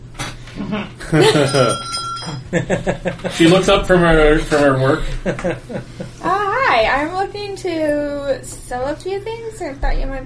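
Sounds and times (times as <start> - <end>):
speech: 0.6 - 1.9, 2.5 - 10.2
laughter: 0.6 - 6.5
shop bell chiming: 1.2 - 2.4.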